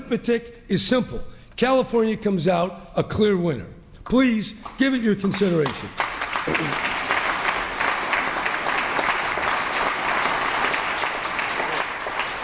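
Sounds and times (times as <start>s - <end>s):
speech: 0.1s - 7.0s
audience applause: 5.6s - 12.4s.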